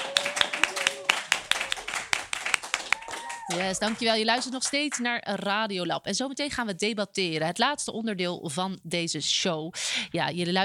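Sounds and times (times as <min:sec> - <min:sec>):
audience applause: 0:00.0 - 0:04.9
speech: 0:03.5 - 0:10.6.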